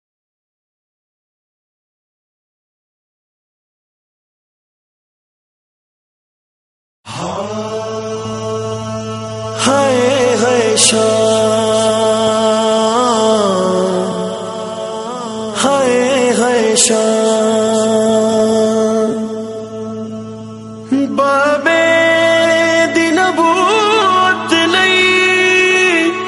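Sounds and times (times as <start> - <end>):
Punjabi noha mourning recitation: 7.1 - 26.2.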